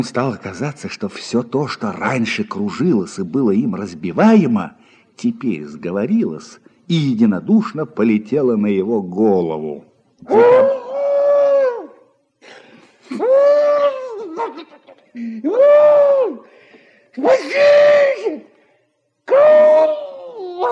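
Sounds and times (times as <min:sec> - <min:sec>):
speech: 0:00.0 - 0:10.8, 0:14.5 - 0:16.6, 0:17.2 - 0:18.5, 0:19.3 - 0:20.0
man wailing and screaming in terror: 0:10.3 - 0:12.0, 0:13.1 - 0:14.6, 0:15.4 - 0:16.5, 0:17.2 - 0:18.5, 0:19.3 - 0:20.6
man gasping: 0:16.4 - 0:17.2.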